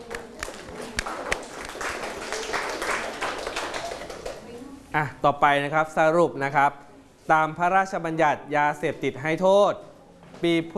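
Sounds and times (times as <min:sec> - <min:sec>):
group applause: 0:00.0 - 0:04.5
speech: 0:05.0 - 0:10.7.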